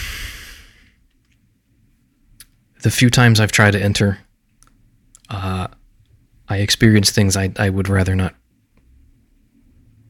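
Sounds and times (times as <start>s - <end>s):
man exhaling deeply in an audio story: 0.0s - 1.0s
speech: 2.8s - 4.2s, 6.5s - 8.4s.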